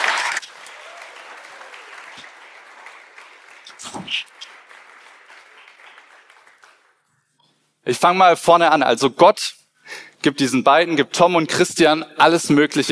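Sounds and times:
audience applause: 0:00.0 - 0:07.0
speech: 0:03.9 - 0:04.4, 0:07.9 - 0:09.6, 0:10.2 - 0:12.9.

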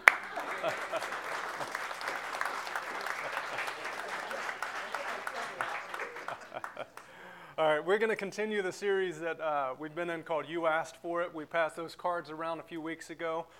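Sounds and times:
audience clapping: 0:00.0 - 0:07.2
laughter: 0:00.0 - 0:07.2
speech: 0:07.8 - 0:13.5.

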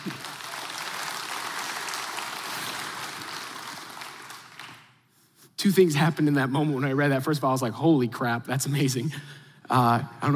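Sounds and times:
crowd applause: 0:00.0 - 0:05.0
speech: 0:05.6 - 0:10.3.

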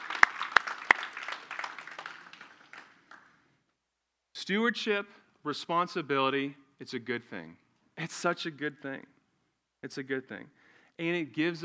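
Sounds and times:
audience clapping: 0:00.0 - 0:03.4
speech: 0:04.4 - 0:09.2, 0:09.8 - 0:11.6.

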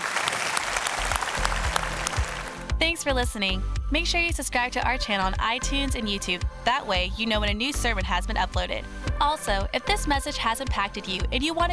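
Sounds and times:
audience applauding: 0:00.0 - 0:02.7
speech: 0:02.8 - 0:11.7.

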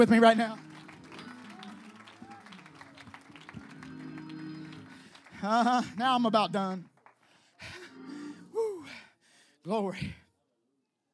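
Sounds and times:
speech: 0:00.0 - 0:00.7, 0:05.4 - 0:06.9, 0:09.6 - 0:10.2
audience clapping hands: 0:00.0 - 0:07.6.

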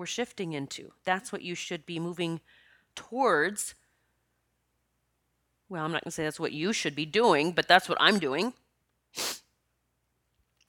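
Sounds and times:
speech: 0:00.0 - 0:03.8, 0:05.7 - 0:09.4
sneeze: 0:09.2 - 0:09.5.

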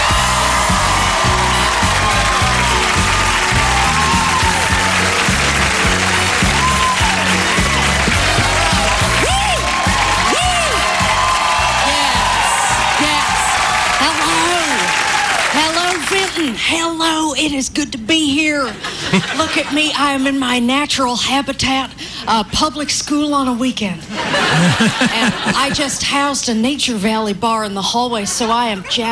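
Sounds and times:
crowd whooping: 0:00.0 - 0:15.9
crowd at an Iowa campaign event clapping: 0:00.0 - 0:16.6, 0:24.4 - 0:25.8
speech: 0:16.8 - 0:29.0
laughter: 0:18.8 - 0:19.8, 0:24.1 - 0:26.0.

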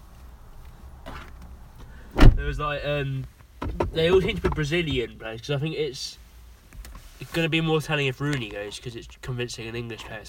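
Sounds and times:
door being closed: 0:02.2 - 0:02.5
speech: 0:02.4 - 0:06.2, 0:07.2 - 0:10.2.

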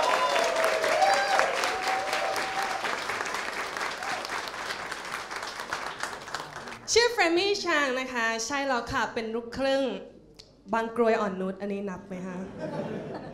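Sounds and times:
audience applause: 0:00.0 - 0:06.8
speech: 0:06.9 - 0:13.3
laughter: 0:12.5 - 0:13.3.

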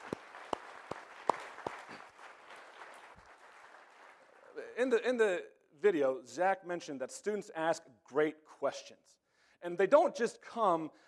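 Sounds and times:
audience applause: 0:00.0 - 0:04.6
speech: 0:04.8 - 0:11.0.

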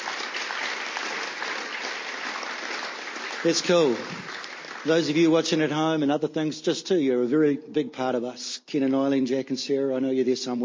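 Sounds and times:
audience applause: 0:00.0 - 0:05.6
speech: 0:03.4 - 0:10.6.

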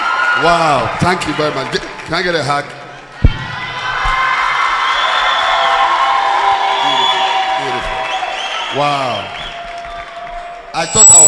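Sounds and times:
crowd cheering and shouting: 0:00.0 - 0:01.5, 0:03.0 - 0:11.2
speech: 0:00.4 - 0:02.8, 0:08.7 - 0:09.5, 0:10.8 - 0:11.2
hands clapping: 0:07.0 - 0:10.8.

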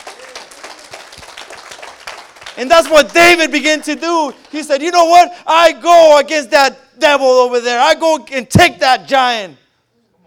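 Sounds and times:
audience clapping: 0:00.0 - 0:05.0
speech: 0:02.6 - 0:09.6.

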